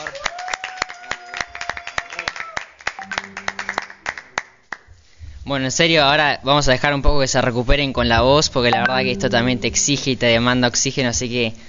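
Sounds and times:
studio applause: 0.0s - 4.9s
speech: 5.5s - 11.6s.

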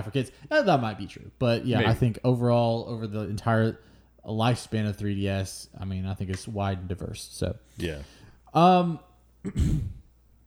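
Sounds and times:
speech: 0.0s - 10.0s
throat clearing: 9.4s - 10.1s.

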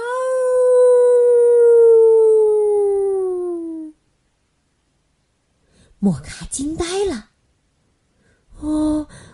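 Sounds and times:
wolf howling: 0.0s - 3.8s
speech: 6.0s - 7.3s.

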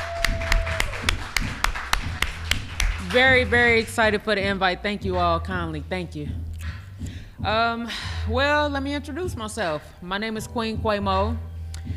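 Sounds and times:
audience clapping: 0.0s - 4.0s
speech: 3.1s - 6.4s, 7.0s - 11.9s.

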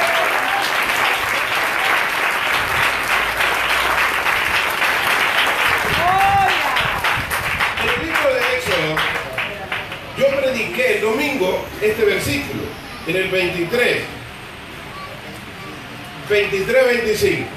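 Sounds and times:
audience applauding loudly: 0.0s - 10.6s
speech: 11.8s - 14.2s, 16.3s - 17.5s.

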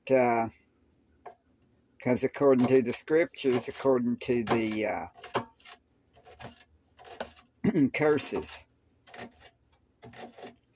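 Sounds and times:
speech: 0.1s - 0.6s, 2.0s - 5.3s, 7.7s - 9.3s
knife dicing celery: 2.5s - 7.4s, 8.0s - 10.6s.

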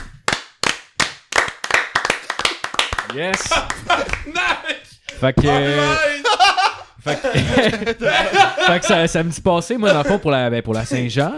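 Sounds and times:
hand clapping applause: 0.0s - 4.4s
laughter: 3.0s - 10.3s
speech: 3.1s - 6.2s, 7.0s - 11.3s.

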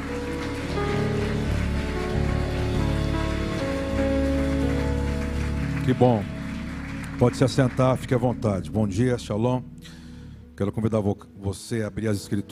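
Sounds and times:
audience applauding: 0.0s - 9.1s
speech: 5.9s - 6.3s, 7.2s - 10.0s, 10.6s - 12.5s.

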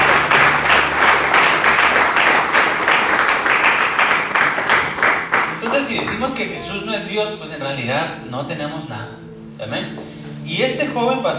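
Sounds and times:
audience applauding: 0.0s - 6.8s
speech: 6.4s - 11.3s.

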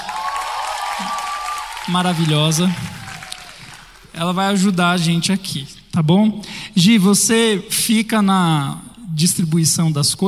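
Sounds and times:
audience applause: 0.0s - 4.2s
speech: 1.8s - 3.0s, 4.2s - 10.2s.

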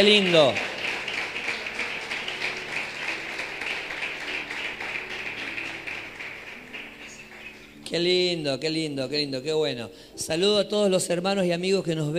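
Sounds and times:
speech: 0.0s - 0.7s, 7.9s - 12.1s
audience applause: 0.0s - 7.9s.

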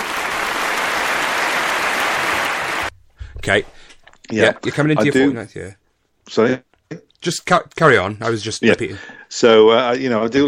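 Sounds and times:
audience applause: 0.0s - 2.9s
speech: 3.4s - 10.4s.

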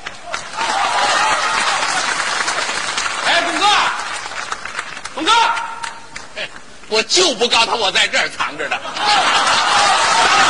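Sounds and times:
audience applause: 0.0s - 6.3s, 9.0s - 10.4s
speech: 6.9s - 10.4s
laughter: 8.5s - 10.4s.

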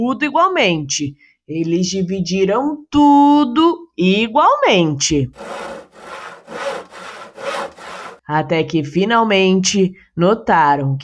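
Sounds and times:
speech: 0.0s - 5.8s, 8.3s - 11.0s
wood being sawed by hand: 5.3s - 8.3s.

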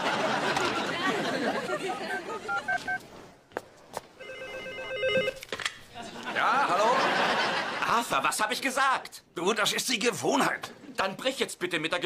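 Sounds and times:
laughter: 0.0s - 3.0s, 5.9s - 8.4s
telephone ringing: 2.0s - 3.0s, 4.2s - 5.4s
speech: 8.2s - 12.0s.

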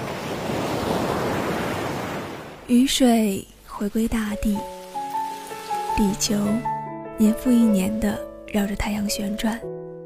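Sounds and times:
ocean waves rising and falling: 0.0s - 7.5s
speech: 2.7s - 4.7s, 6.0s - 9.8s.

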